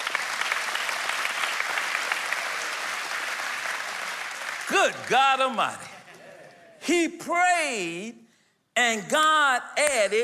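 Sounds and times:
audience clapping: 0.0 - 6.8
speech: 4.7 - 5.9, 6.8 - 8.2, 8.8 - 10.2.

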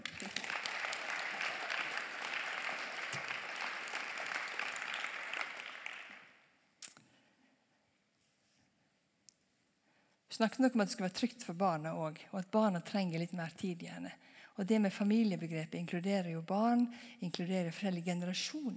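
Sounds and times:
crowd applauding: 0.0 - 6.4
speech: 10.4 - 18.7.

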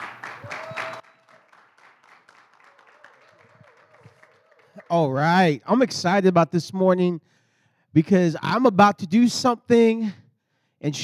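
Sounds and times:
audience hand clapping: 0.0 - 5.1
speech: 4.9 - 10.2, 10.8 - 11.0.

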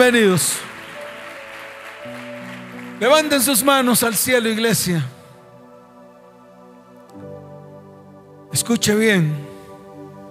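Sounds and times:
speech: 0.0 - 0.7, 3.0 - 5.2, 8.5 - 9.5
applause: 0.0 - 4.6.

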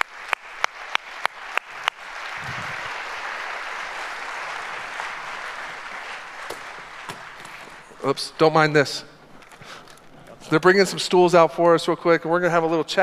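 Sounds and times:
church audience applause for a senior pastor and baseball coach: 0.0 - 8.2
speech: 8.0 - 9.1, 10.5 - 13.0.

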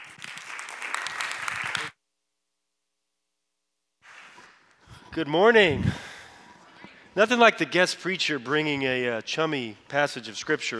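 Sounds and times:
audience applause: 0.0 - 1.9
speech: 5.2 - 6.0, 7.2 - 10.7.

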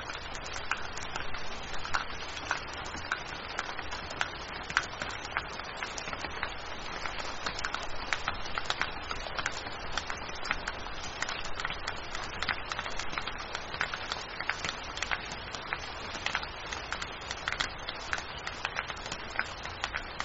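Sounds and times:
rain drops striking a surface: 0.0 - 20.2.

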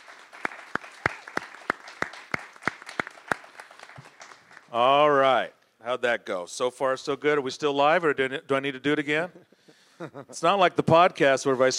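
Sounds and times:
applause: 0.0 - 4.8
speech: 4.7 - 11.7.

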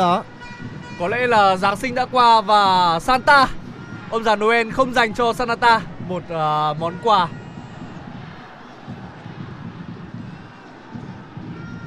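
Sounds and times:
speech: 0.0 - 0.4, 1.0 - 7.4
Indonesia away fans crowd roar at AFF Cup 2022 match against Brunei: 1.0 - 11.8
Indonesia away fans rhythmic chanting in the stands: 3.6 - 11.8.

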